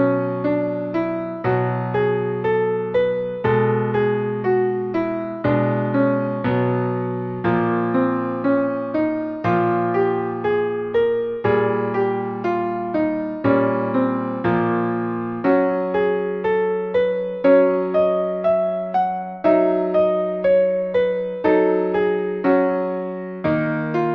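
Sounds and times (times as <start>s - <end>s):
Dorian minor scales played: 0.0s - 24.1s.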